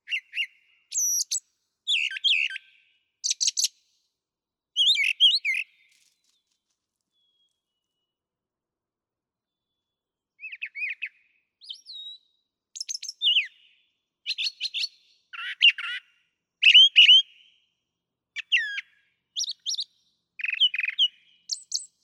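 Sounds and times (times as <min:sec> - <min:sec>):
brown thrasher singing: 0:00.0 - 0:03.7, 0:04.8 - 0:06.0, 0:09.7 - 0:16.0, 0:18.4 - 0:22.0.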